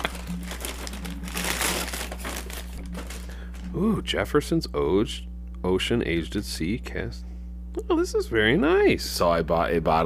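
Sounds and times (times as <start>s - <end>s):
paper gift bag crinkling as it is opened: 0.0s - 3.7s
low constant hum: 0.0s - 10.0s
speech: 3.8s - 10.0s.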